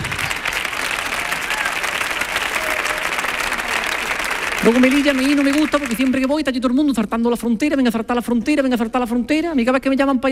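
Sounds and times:
audience applause: 0.0s - 6.3s
speech: 4.7s - 10.3s.

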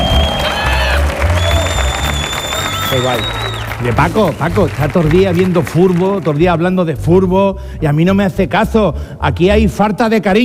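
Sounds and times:
loud audience applause in auditorium: 0.0s - 6.6s
speech: 3.0s - 10.4s.

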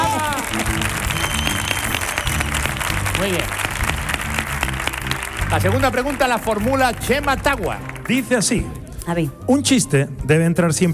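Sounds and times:
audience applause: 0.0s - 8.3s
speech: 3.2s - 3.6s, 5.5s - 10.9s.

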